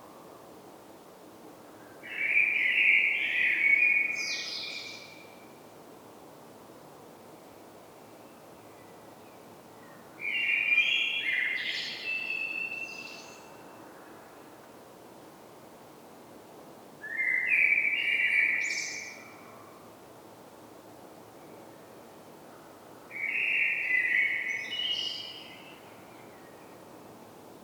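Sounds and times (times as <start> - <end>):
common blackbird song: 2.1 - 5.3, 8.8 - 13.9, 17.0 - 19.6, 23.1 - 26.8.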